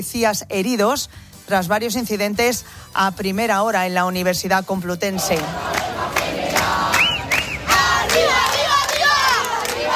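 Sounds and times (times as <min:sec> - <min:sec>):
speech: 0:00.0 - 0:06.4
protest crowd shouting and chanting in a square: 0:05.2 - 0:09.9
sharp whistles: 0:07.0 - 0:07.7.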